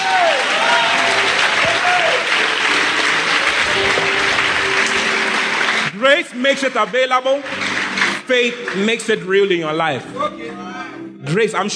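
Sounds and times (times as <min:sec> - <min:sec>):
audience clapping and applause: 0:00.0 - 0:09.1
speech: 0:06.1 - 0:07.6, 0:08.3 - 0:11.7.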